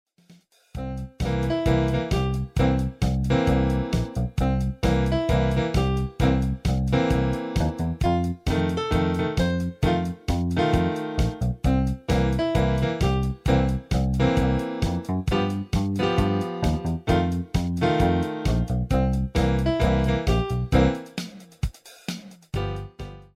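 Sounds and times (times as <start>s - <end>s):
rock music: 0.8s - 21.5s.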